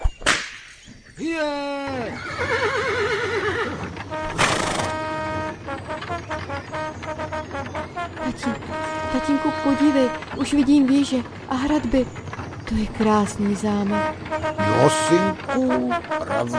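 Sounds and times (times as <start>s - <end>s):
whip cracking: 0.2s - 0.7s
speech: 1.2s - 3.0s, 6.6s - 16.5s
hooves of trotting horses clip-clopping: 1.3s - 16.5s
horse neighing: 1.6s - 5.0s.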